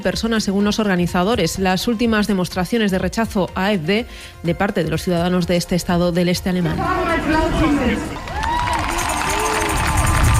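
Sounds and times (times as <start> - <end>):
speech: 0.0 - 8.2
people in front of a stage applauding speeches: 7.0 - 10.3.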